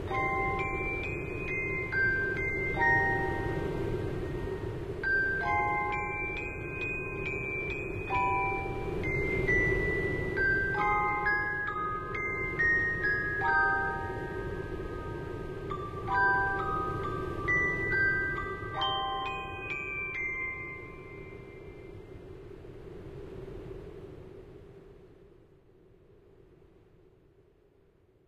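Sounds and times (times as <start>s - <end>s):
clockwork melody: 0.1s - 21.6s.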